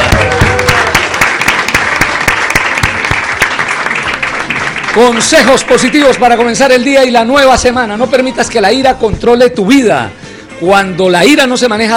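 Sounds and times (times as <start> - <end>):
applause: 0.0 - 6.8
speech: 5.0 - 11.9.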